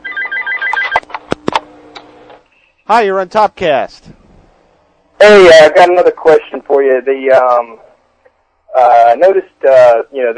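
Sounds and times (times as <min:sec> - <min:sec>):
telephone ringing with an incoming call to the show: 0:00.0 - 0:01.1
clicks and tones as the phone line is picked up: 0:00.0 - 0:01.2
speech: 0:02.9 - 0:04.2, 0:05.2 - 0:07.9, 0:08.8 - 0:10.3.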